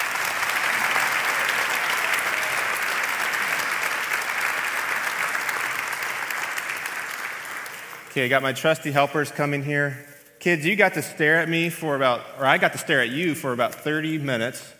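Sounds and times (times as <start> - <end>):
audience applause: 0.0 - 8.2
speech: 8.2 - 14.7.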